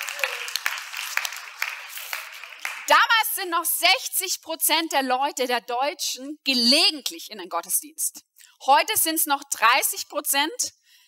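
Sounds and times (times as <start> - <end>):
audience applause: 0.0 - 2.9
speech: 2.9 - 10.8.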